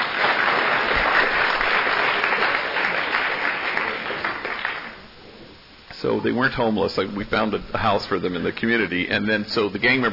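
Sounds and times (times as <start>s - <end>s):
audience applause: 0.0s - 5.1s
speech: 6.0s - 10.1s.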